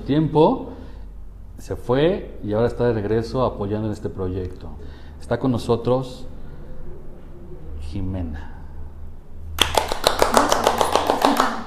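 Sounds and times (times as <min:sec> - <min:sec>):
speech: 0:00.1 - 0:00.7, 0:01.6 - 0:06.3, 0:07.9 - 0:08.5
small group clapping: 0:09.6 - 0:11.6.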